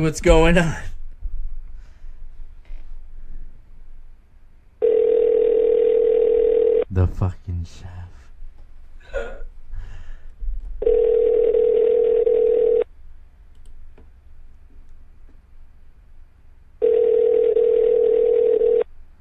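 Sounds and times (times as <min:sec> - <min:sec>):
speech: 0:00.0 - 0:00.9, 0:07.0 - 0:08.1
telephone call ring tones: 0:04.8 - 0:06.9, 0:10.8 - 0:12.9, 0:16.8 - 0:18.9.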